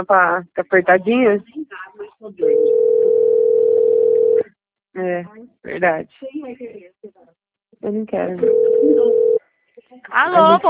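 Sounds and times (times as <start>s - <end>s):
speech: 0.0s - 2.7s, 5.0s - 6.9s, 7.8s - 9.4s, 10.0s - 10.6s
steady telephone tone on a call being answered: 2.4s - 4.4s, 8.4s - 9.4s.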